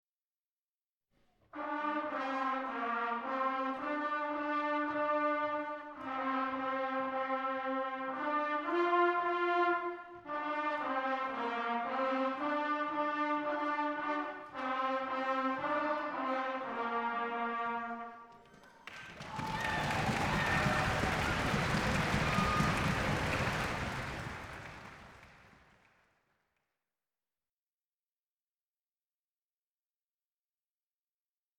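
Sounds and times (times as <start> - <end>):
trumpets: 1.5 - 18.4, 19.2 - 25.6.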